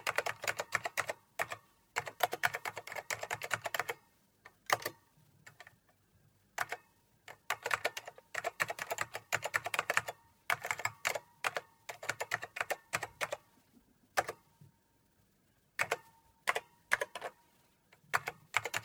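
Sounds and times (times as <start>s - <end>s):
typing on a computer keyboard: 0.0s - 4.1s, 4.7s - 5.8s, 6.6s - 13.5s, 14.2s - 14.4s, 15.8s - 17.4s, 18.0s - 18.8s.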